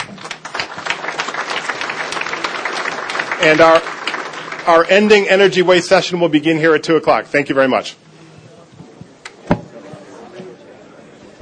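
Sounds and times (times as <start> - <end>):
audience applause: 0.0 - 5.3
speech: 3.4 - 4.0, 4.7 - 8.0.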